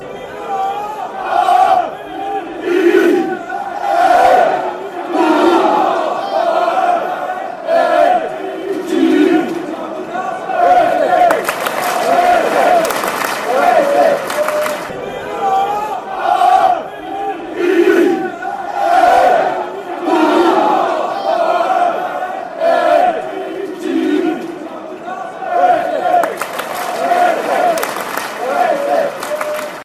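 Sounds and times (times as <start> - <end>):
football fans chanting: 0.0 - 29.8.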